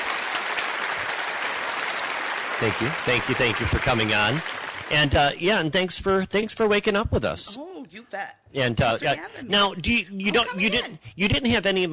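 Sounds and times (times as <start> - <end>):
audience round of applause: 0.0 - 5.4
speech: 2.6 - 11.9.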